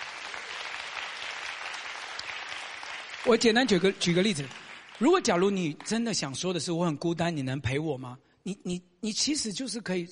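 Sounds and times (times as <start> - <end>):
audience clapping during a church sermon: 0.0 - 6.4
speech: 3.2 - 10.1.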